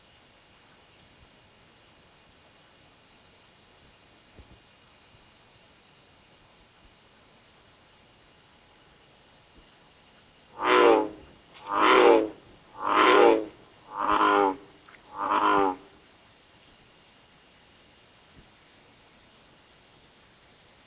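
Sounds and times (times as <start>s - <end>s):
American bullfrog Lithobates catesbeianus croaking: 10.6s - 16.0s.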